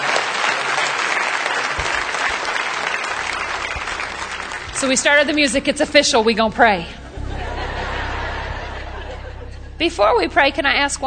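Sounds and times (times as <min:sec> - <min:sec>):
audience clapping: 0:00.0 - 0:05.7
speech: 0:04.8 - 0:07.0, 0:09.8 - 0:11.0
laughter: 0:07.0 - 0:09.8.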